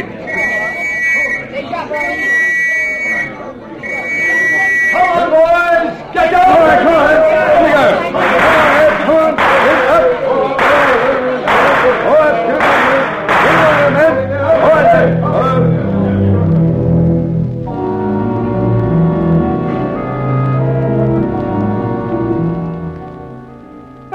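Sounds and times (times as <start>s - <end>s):
crowd chattering and shouting in the street: 0.0s - 24.1s
sharp whistle blasts: 0.2s - 5.1s.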